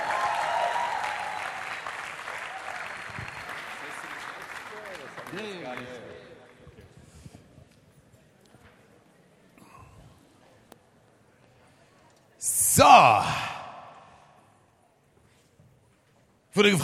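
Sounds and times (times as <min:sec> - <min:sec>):
audience applause: 0:00.0 - 0:06.6
speech: 0:05.3 - 0:06.1, 0:12.8 - 0:13.4, 0:16.6 - 0:16.8.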